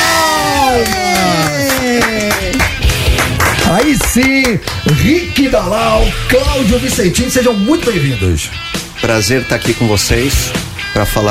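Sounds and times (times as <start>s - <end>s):
studio applause and cheering: 0.0s - 5.1s
speech: 4.2s - 11.2s.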